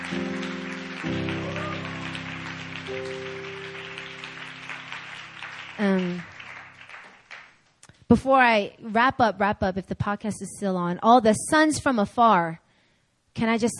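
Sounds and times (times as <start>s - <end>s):
audience applause: 0.0s - 7.6s
speech: 8.1s - 12.6s, 13.4s - 13.7s.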